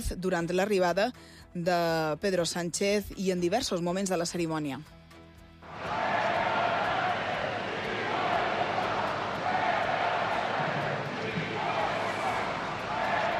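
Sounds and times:
speech: 0:00.0 - 0:05.0
large crowd shouting insults and jeering: 0:05.7 - 0:13.3.

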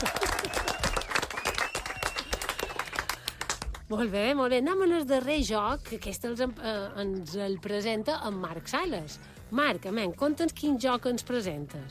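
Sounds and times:
loud audience applause: 0:00.0 - 0:03.8
speech: 0:03.9 - 0:11.8.

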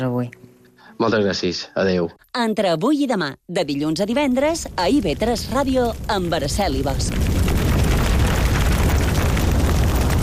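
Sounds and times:
speech: 0:00.0 - 0:07.3
fire burning: 0:04.0 - 0:10.2.

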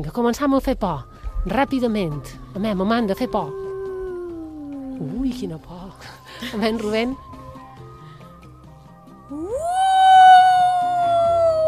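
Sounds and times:
speech: 0:00.0 - 0:03.6, 0:05.0 - 0:07.3
voice imitating an ambulance siren: 0:02.7 - 0:05.3, 0:09.3 - 0:11.6.

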